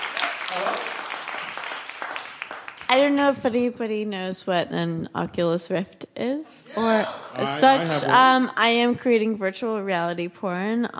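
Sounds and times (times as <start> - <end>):
audience applause at a live improv comedy show: 0.0 - 2.9
speech: 2.9 - 10.9.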